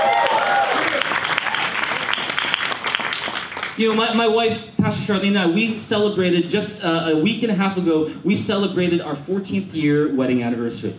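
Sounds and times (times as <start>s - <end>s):
audience applause and cheering: 0.0s - 3.8s
speech: 3.8s - 10.9s.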